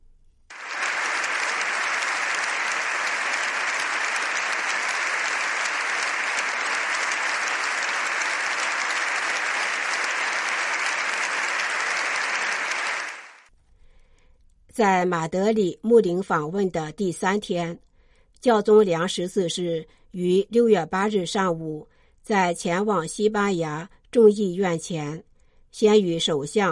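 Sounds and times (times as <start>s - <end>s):
standing ovation applause: 0.5s - 13.5s
speech: 14.8s - 17.8s, 18.4s - 26.7s.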